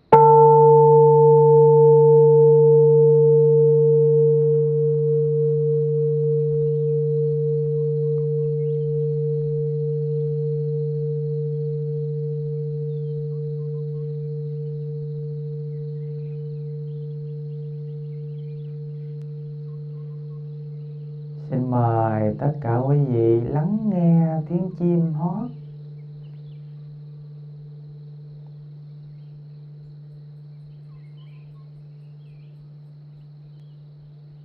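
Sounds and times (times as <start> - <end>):
temple bell ringing: 0.0 - 26.2.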